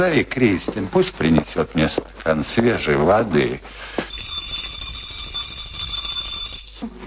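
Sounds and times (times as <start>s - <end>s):
speech: 0.0s - 4.0s
small bell ringing to summon a servant: 4.1s - 7.0s.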